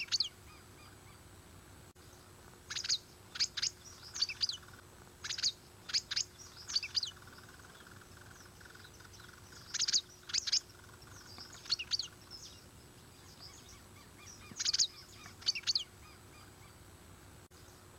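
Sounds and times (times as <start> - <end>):
dragon bird song high chirps: 0.0 - 1.2, 2.0 - 16.8
steady low hiss: 0.0 - 17.9.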